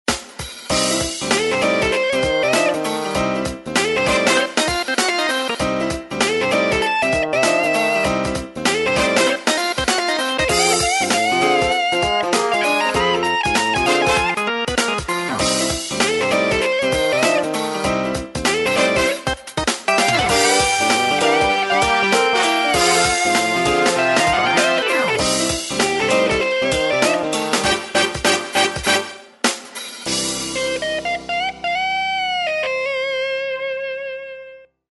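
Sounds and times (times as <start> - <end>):
blues music: 0.1 - 34.8.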